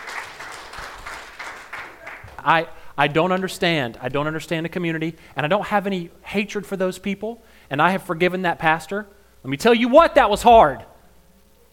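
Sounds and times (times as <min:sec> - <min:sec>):
audience clapping: 0:00.0 - 0:03.6
speech: 0:02.4 - 0:10.9.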